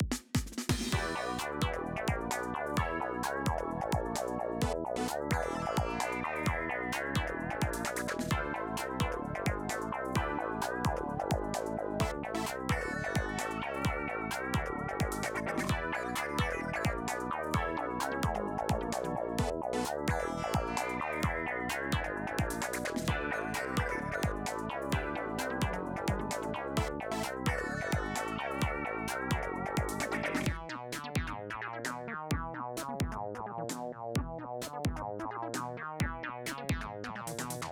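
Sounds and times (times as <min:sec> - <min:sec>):
minigame item select background music: 0:00.8 - 0:37.7.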